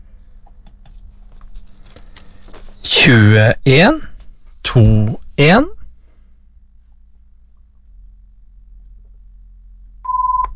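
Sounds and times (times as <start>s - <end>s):
speech: 2.9s - 4.1s, 4.7s - 5.8s
telephone beep: 10.1s - 10.5s.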